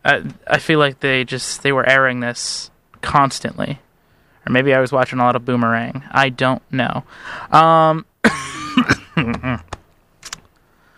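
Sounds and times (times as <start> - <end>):
speech: 0.1 - 8.9
person with a pollen allergy coughing: 8.2 - 9.7.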